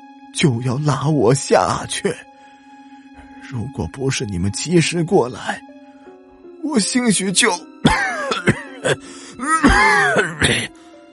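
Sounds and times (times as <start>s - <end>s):
speech: 0.4s - 2.3s, 3.5s - 5.7s, 6.6s - 10.8s
harsh violent coughing: 7.8s - 10.8s.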